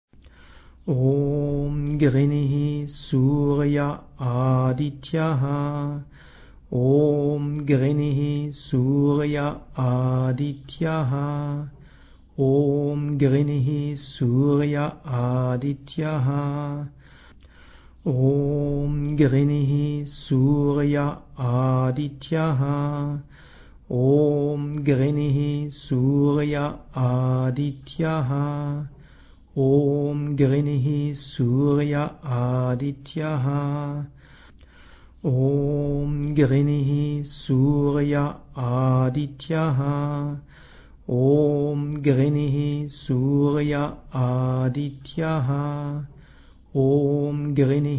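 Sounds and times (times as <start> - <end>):
mantra chanting: 0.8 - 17.1, 18.0 - 34.3, 35.2 - 47.9.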